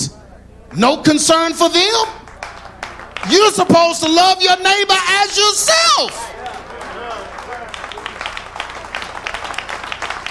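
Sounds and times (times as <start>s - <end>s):
speech: 0.7s - 2.2s, 3.3s - 6.4s
audience clapping: 2.2s - 10.2s.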